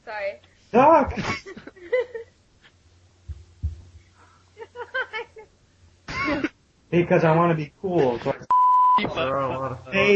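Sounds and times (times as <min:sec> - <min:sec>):
speech: 0:00.1 - 0:01.6, 0:07.0 - 0:10.1
laughter: 0:01.1 - 0:02.3, 0:04.6 - 0:05.5
high-pitched censor bleep over a curse word: 0:08.5 - 0:09.1.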